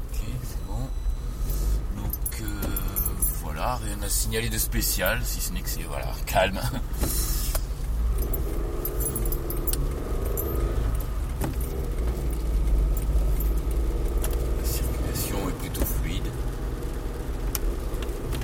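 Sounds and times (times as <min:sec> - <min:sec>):
car engine starting and rumbling: 0:00.0 - 0:18.4
metallic jingles and clicks: 0:01.4 - 0:05.2, 0:08.0 - 0:16.2
speech: 0:03.6 - 0:07.2.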